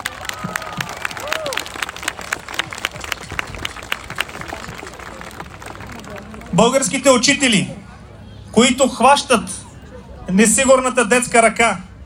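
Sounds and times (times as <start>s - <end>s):
people cheering: 0.0s - 6.4s
crowd applauding: 0.0s - 6.9s
speech: 6.6s - 7.8s, 8.6s - 9.6s, 10.3s - 11.8s.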